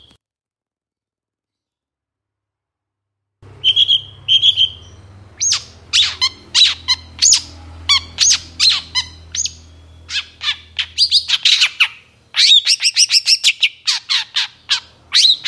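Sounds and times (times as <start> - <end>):
long-tailed shrike singing in the morning: 3.5 - 15.4.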